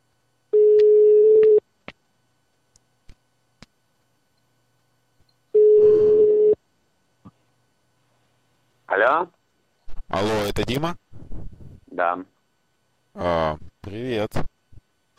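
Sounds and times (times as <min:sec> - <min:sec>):
telephone ringing tone: 0:00.6 - 0:01.6, 0:05.6 - 0:06.6
speech: 0:09.0 - 0:09.4, 0:10.2 - 0:11.1, 0:12.0 - 0:12.3, 0:13.2 - 0:14.5.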